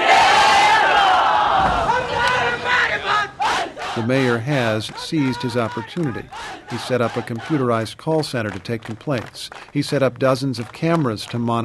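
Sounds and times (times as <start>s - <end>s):
party supporters cheering at college ribbon cutting in Karachi: 0.0s - 7.7s
speech: 4.0s - 11.6s.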